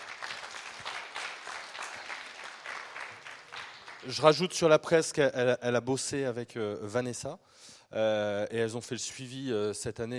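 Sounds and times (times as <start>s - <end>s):
audience applause for a presenter at a meeting: 0.0s - 4.4s
speech: 4.0s - 10.1s.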